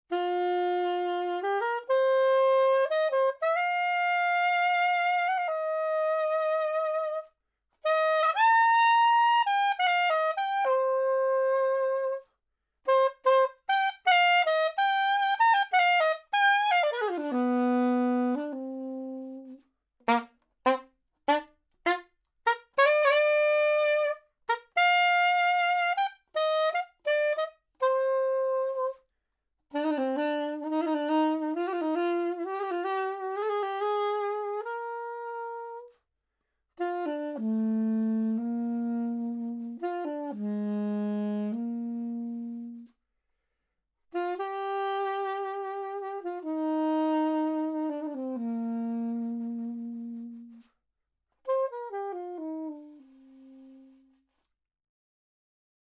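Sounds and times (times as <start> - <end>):
soprano saxophone note C: 0.1 - 12.3, 12.9 - 29.1, 29.7 - 36.0, 36.8 - 43.0, 44.1 - 50.8, 51.4 - 54.5.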